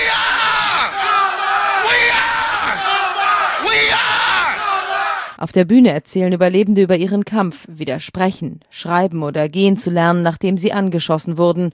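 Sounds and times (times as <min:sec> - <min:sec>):
crowd at a memorial ceremony shouting a school battle cry: 0:00.0 - 0:05.4
speech: 0:05.4 - 0:11.7.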